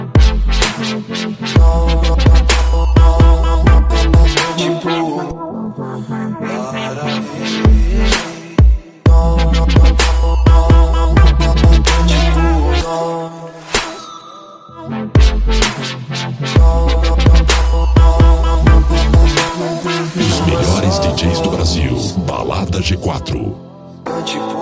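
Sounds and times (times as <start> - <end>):
rap house music: 0.1 - 5.4, 6.0 - 13.0, 16.5 - 23.6.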